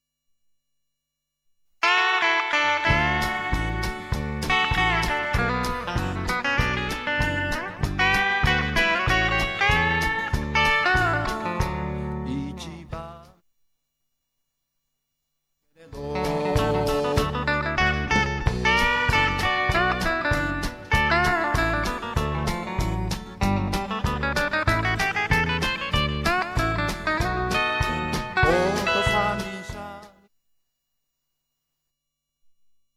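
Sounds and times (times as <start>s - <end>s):
Fender Stratocaster electric guitar: 1.8s - 12.7s, 16.0s - 30.1s.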